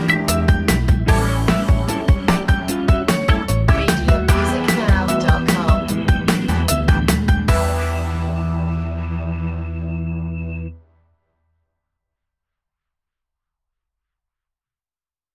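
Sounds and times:
latin music: 0:00.0 - 0:10.8.

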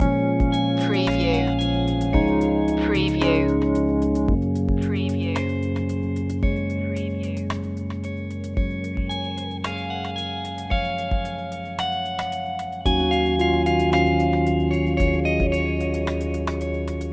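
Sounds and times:
music loop: 0:00.0 - 0:17.1.

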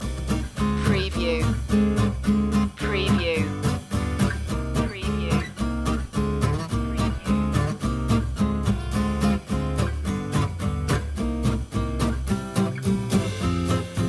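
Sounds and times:
swing music loop: 0:00.0 - 0:14.0.

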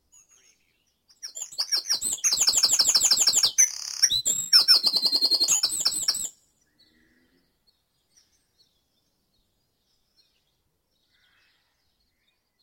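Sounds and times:
bird song: 0:00.0 - 0:12.6.

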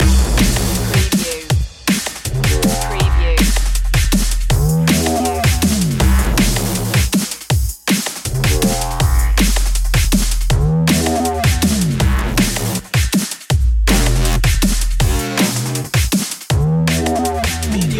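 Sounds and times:
rising music loop: 0:00.0 - 0:13.0, 0:13.9 - 0:17.9.

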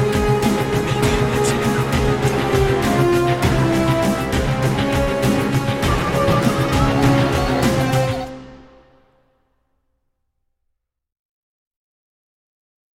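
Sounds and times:
eastern tension dubstep music: 0:00.0 - 0:08.8.

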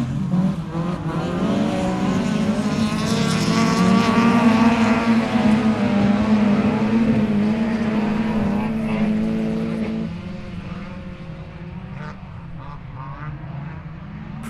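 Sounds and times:
distant cars racing on grass: 0:00.0 - 0:14.4.

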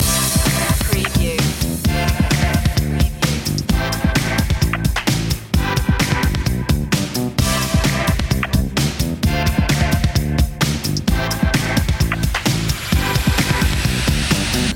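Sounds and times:
electronic music loop: 0:00.0 - 0:14.7.

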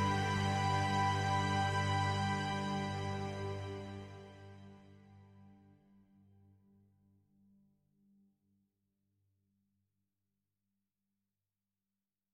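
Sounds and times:
orchestra: 0:00.0 - 0:05.2.

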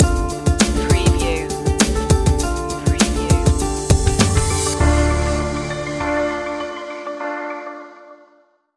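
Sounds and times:
tribal trip hop stinger: 0:00.0 - 0:07.8.

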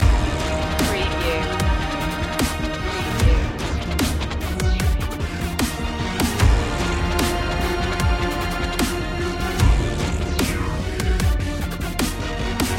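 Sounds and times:
dark power music loop: 0:00.0 - 0:12.7.

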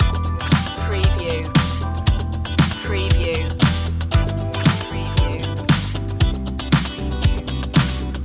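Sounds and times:
funk loop: 0:00.0 - 0:08.2.

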